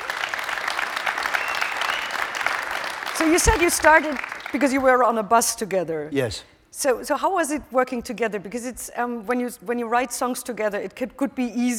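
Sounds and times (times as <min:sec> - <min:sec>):
audience applause: 0:00.0 - 0:04.7
speech: 0:03.2 - 0:11.7.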